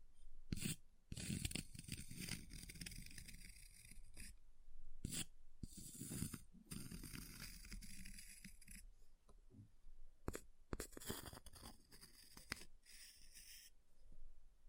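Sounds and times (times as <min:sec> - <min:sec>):
ice scratching and carving: 0:00.6 - 0:04.2, 0:05.8 - 0:08.8, 0:10.8 - 0:13.7.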